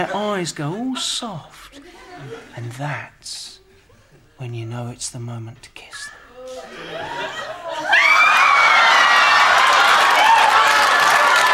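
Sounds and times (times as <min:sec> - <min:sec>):
speech: 0:00.0 - 0:03.6, 0:04.4 - 0:06.0
laughter: 0:01.8 - 0:02.7, 0:06.4 - 0:09.5
studio audience screaming: 0:07.7 - 0:11.5.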